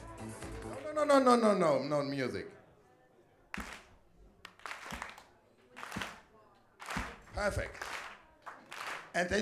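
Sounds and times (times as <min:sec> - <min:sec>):
audience clapping together: 0:00.0 - 0:01.1, 0:03.5 - 0:09.4
speech: 0:01.0 - 0:02.6, 0:07.4 - 0:07.9, 0:09.2 - 0:09.4.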